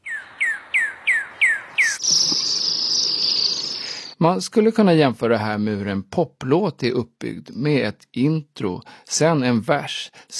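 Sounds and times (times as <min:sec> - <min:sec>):
songbird singing: 0:00.0 - 0:04.2
speech: 0:04.2 - 0:10.3.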